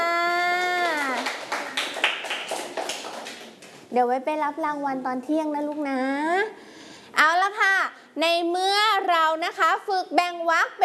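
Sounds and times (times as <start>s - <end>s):
children clapping for a classmate: 0.5s - 3.8s
speech: 3.9s - 6.6s, 7.2s - 10.8s.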